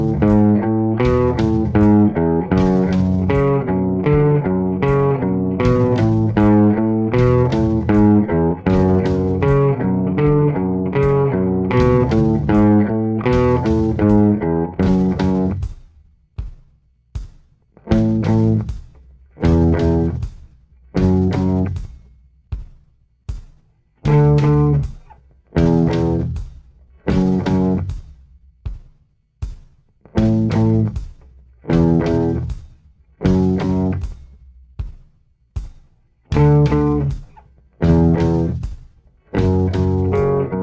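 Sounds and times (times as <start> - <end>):
slow guitar riff: 0.0 - 15.7, 17.9 - 18.7, 19.4 - 20.2, 21.0 - 21.8, 24.1 - 25.0, 25.6 - 26.4, 27.1 - 27.9, 30.2 - 31.0, 31.7 - 32.5, 33.2 - 34.1, 36.3 - 38.7, 39.3 - 40.6.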